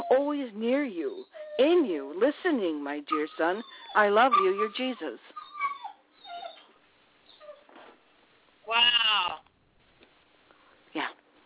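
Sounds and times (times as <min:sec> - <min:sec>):
dog whining, singing: 0:00.0 - 0:00.2, 0:01.0 - 0:01.8, 0:03.1 - 0:07.8
speech: 0:00.1 - 0:05.4, 0:08.7 - 0:09.4.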